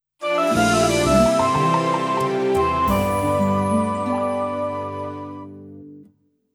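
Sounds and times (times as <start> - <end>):
glider game success jingle: 0.4 - 4.8.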